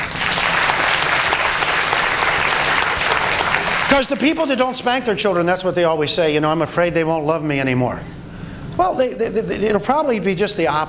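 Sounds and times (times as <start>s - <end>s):
audience applause: 0.0s - 4.6s
speech: 3.9s - 8.2s, 8.8s - 10.8s.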